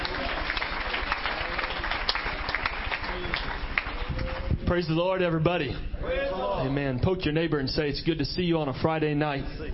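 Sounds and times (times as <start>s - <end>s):
audience hand clap of praise: 0.0s - 5.3s
speech: 4.7s - 9.6s.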